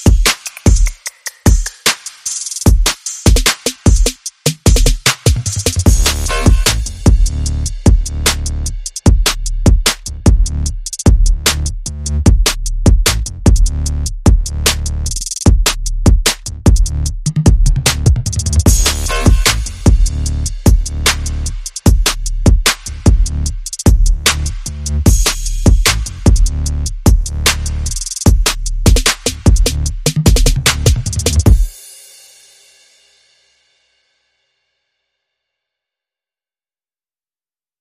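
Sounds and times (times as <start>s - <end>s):
drums: 0.0s - 33.2s
bass: 3.9s - 31.7s.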